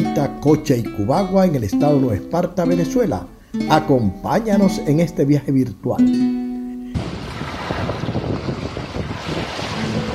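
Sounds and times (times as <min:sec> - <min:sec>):
speech: 0:00.2 - 0:06.4
sea and surf rushing: 0:07.0 - 0:10.1
wind buffeting microphone on an open beach: 0:07.0 - 0:10.1.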